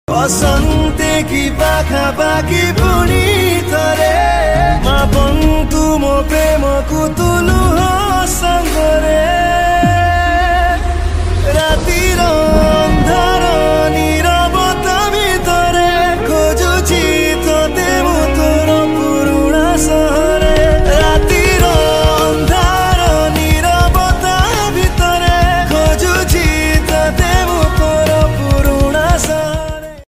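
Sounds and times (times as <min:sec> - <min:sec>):
Odia sad song: 0:00.1 - 0:30.0.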